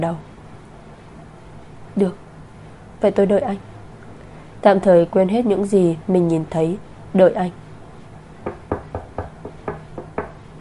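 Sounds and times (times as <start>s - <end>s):
speech: 0.0s - 0.3s, 2.0s - 2.2s, 3.0s - 3.7s, 4.6s - 7.6s
knocking on a wall: 8.4s - 10.4s.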